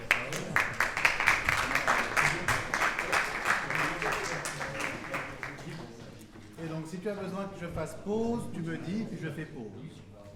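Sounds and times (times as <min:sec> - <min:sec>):
audience applause: 0:00.0 - 0:06.0
speech: 0:07.0 - 0:10.1.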